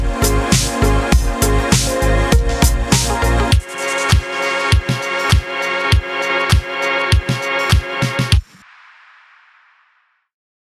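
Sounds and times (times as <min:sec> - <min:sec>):
chillwave music loops: 0:00.0 - 0:09.2.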